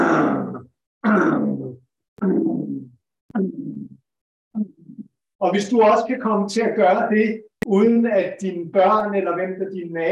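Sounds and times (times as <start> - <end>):
low rumbling humming grunts from a human voice: 0.0 - 4.0
speech: 5.4 - 10.1.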